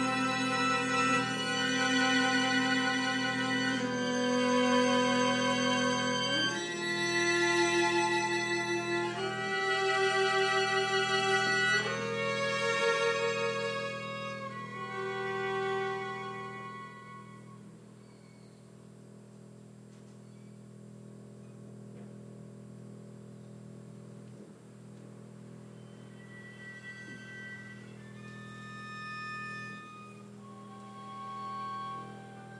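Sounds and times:
string trio playing: 0.0s - 17.7s, 25.8s - 32.5s.

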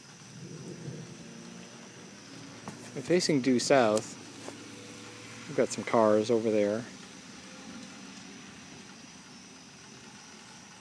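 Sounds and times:
distant thunder rumbling: 0.0s - 8.9s
broad hiss: 0.0s - 10.7s
speech: 3.0s - 4.2s, 5.6s - 7.0s.

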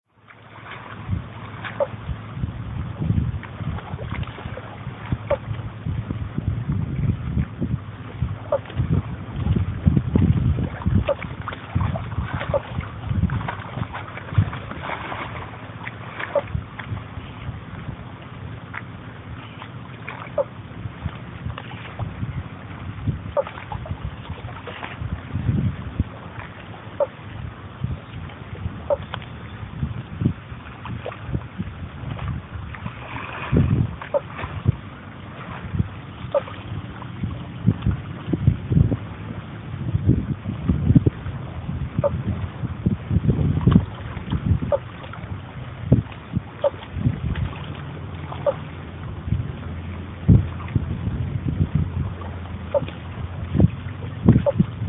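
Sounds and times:
water at Brown Lake on Stradbroke Island: 0.0s - 54.8s
frogs at Brown Lake on Stradbroke Island: 20.3s - 20.6s, 23.3s - 23.8s, 26.9s - 27.2s, 28.8s - 29.2s, 34.0s - 34.4s, 36.3s - 36.6s, 44.7s - 44.9s, 46.6s - 46.8s, 48.3s - 48.7s, 52.7s - 53.0s, 54.4s - 54.6s.

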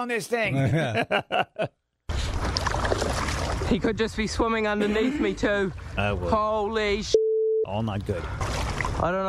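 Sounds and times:
speech: 0.0s - 1.8s, 3.7s - 9.2s
laughter: 0.5s - 1.8s
paddling a boat through a cave tunnel: 2.1s - 3.8s, 8.2s - 9.1s
rushing water: 2.1s - 3.8s, 8.2s - 9.2s.

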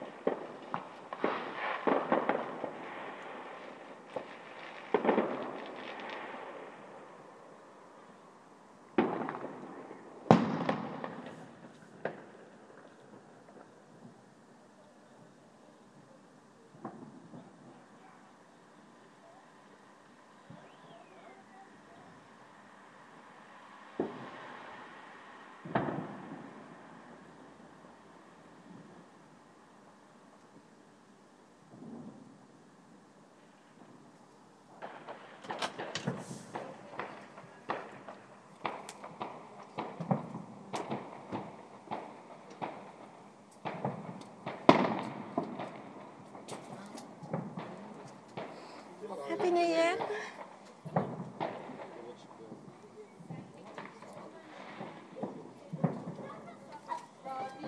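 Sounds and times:
fireworks thumping: 0.0s - 6.8s, 9.0s - 14.2s, 23.9s - 24.5s, 25.6s - 27.3s, 34.8s - 57.6s.

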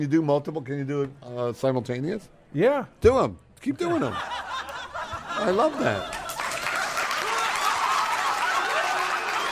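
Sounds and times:
speech: 0.0s - 4.5s, 5.4s - 6.2s
audience laughter sound effect: 3.9s - 9.5s
cheering: 6.0s - 9.5s
applause sound effect: 6.1s - 9.5s.

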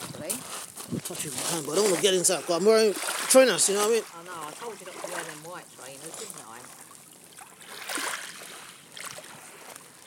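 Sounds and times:
speech: 1.1s - 6.8s
sea waves: 1.2s - 10.0s.

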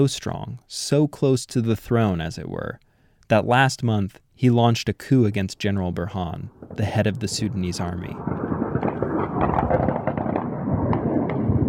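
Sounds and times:
speech: 0.0s - 8.5s, 9.4s - 9.9s
machine gun fire in the streets of Khartoum: 8.2s - 11.6s.

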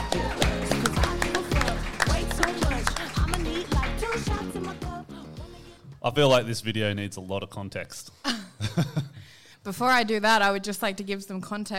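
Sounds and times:
audience cheering: 0.0s - 4.5s
audience clapping: 0.0s - 5.1s
speech: 6.0s - 11.7s.

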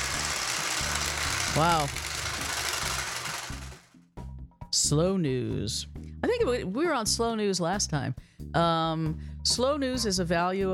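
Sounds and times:
game-show prize wheel spinning: 0.0s - 3.9s
speech: 1.5s - 2.0s, 4.9s - 10.7s.

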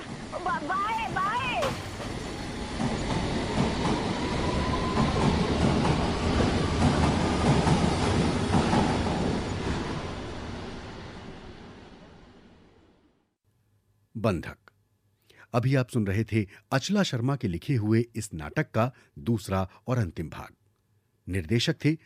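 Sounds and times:
train arriving and running on rails: 0.0s - 13.2s
speech: 14.2s - 14.6s, 15.5s - 20.6s, 21.3s - 22.0s.

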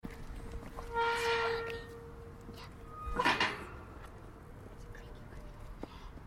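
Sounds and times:
gate: 0.8s - 4.2s.

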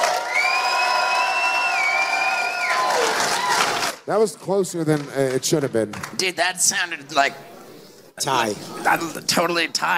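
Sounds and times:
audience clapping: 0.0s - 4.1s, 4.8s - 6.3s
speech: 4.1s - 7.6s, 8.2s - 9.9s.

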